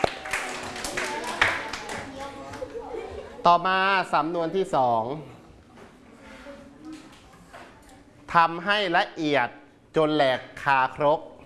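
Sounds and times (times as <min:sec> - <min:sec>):
students clapping for themselves: 0:00.0 - 0:02.8
speech: 0:03.4 - 0:05.4, 0:08.3 - 0:11.3.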